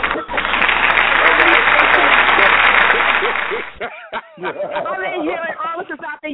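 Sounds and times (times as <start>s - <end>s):
sustained audience applause: 0.0s - 3.8s
laughter: 0.0s - 6.2s.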